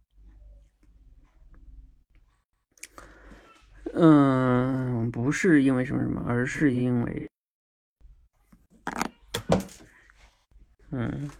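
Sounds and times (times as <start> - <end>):
speech: 4.0 - 7.3, 10.9 - 11.3
pen dropping: 8.8 - 9.9.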